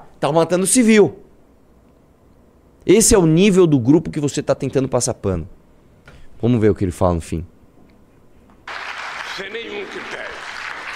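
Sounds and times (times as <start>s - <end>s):
speech: 0.2s - 1.2s, 2.8s - 5.6s, 6.4s - 7.5s
applause in played recording: 8.6s - 10.9s.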